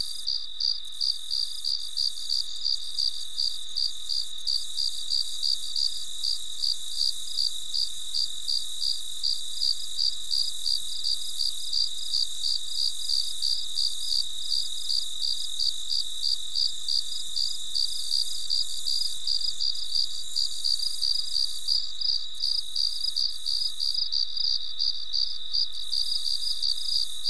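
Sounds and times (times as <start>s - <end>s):
cricket chirping: 0.0s - 27.2s.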